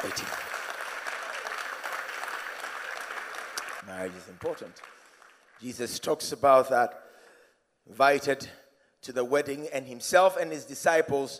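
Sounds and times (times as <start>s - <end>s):
speech: 0.0s - 0.4s, 3.9s - 5.0s, 5.6s - 7.1s, 7.9s - 11.3s
audience clapping: 0.0s - 6.0s.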